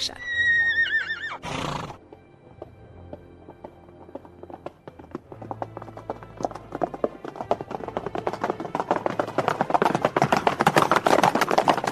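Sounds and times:
horse whinnying: 0.0s - 2.0s
horse hooves galloping: 0.6s - 11.9s.

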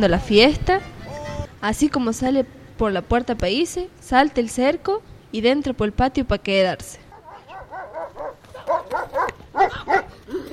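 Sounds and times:
speech: 0.0s - 0.9s, 1.6s - 7.0s
dogs barking: 7.1s - 10.3s.

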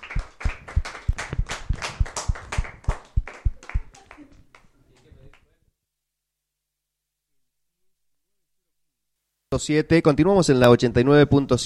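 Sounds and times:
applause, hands clapping: 0.0s - 5.5s
speech: 9.6s - 11.6s.

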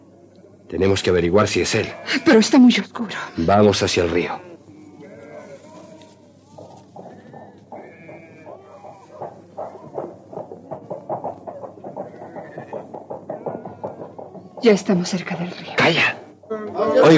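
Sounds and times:
speech: 0.7s - 4.5s, 14.6s - 16.2s, 17.0s - 17.1s
sheep bleating: 1.4s - 10.1s, 11.9s - 14.5s.

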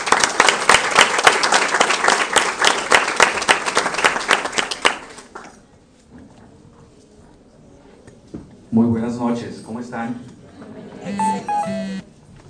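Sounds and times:
audience applause: 0.0s - 5.2s
speech: 8.8s - 10.4s.

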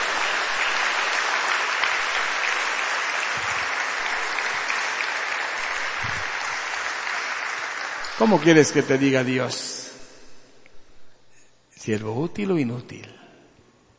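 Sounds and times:
audience applause: 0.0s - 9.3s
speech: 8.2s - 9.8s, 11.9s - 13.2s.

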